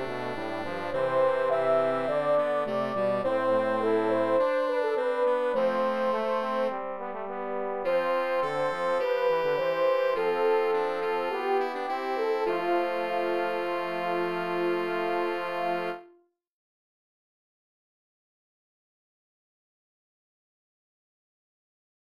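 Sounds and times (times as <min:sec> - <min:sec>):
four-voice fugue: 0:00.0 - 0:16.1.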